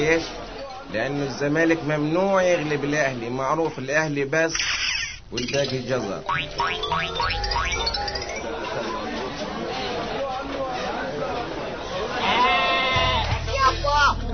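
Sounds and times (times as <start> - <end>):
speech: 0.0 - 8.2
chattering voices: 0.0 - 14.3
small sheep bought by Zamalek fans bleating: 12.2 - 13.3.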